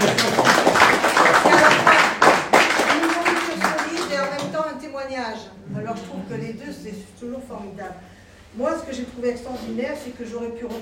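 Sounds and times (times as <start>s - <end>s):
audience applause: 0.0s - 4.5s
speech: 7.8s - 10.7s.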